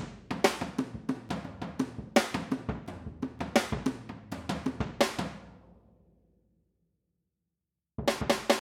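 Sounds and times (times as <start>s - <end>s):
drum through an equalizer plugin: 0.0s - 5.5s, 8.0s - 8.6s.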